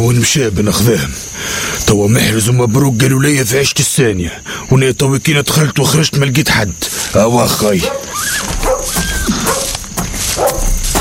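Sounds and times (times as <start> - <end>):
speech: 0.0 - 8.5
dogs barking and yipping: 7.7 - 10.9
dogs whining and whimpering: 7.8 - 9.8.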